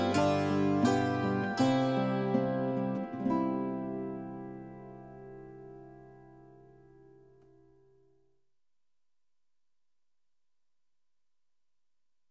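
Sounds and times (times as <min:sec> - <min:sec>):
string music: 0:00.0 - 0:06.2.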